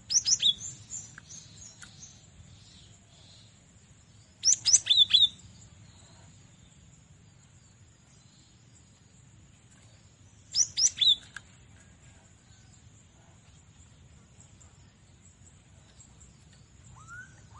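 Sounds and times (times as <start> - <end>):
cinereous tit calling in rapid high slurred chirps: 0.0 - 2.2, 4.4 - 5.5, 10.5 - 11.4.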